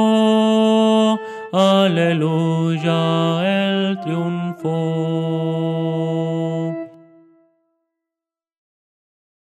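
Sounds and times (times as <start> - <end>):
contralto voice: 0.0 - 7.5.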